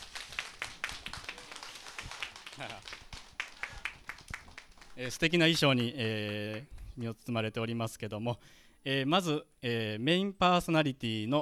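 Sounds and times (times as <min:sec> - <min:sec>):
audience applause: 0:00.0 - 0:06.6
speech: 0:02.6 - 0:03.0, 0:05.0 - 0:11.4.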